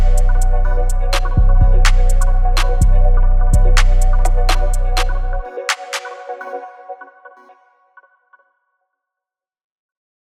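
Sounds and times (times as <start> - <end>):
hip hop beat: 0.0 - 7.5.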